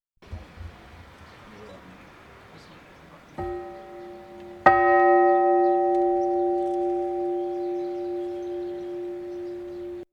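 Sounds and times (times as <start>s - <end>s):
bell ringing: 3.4s - 10.1s.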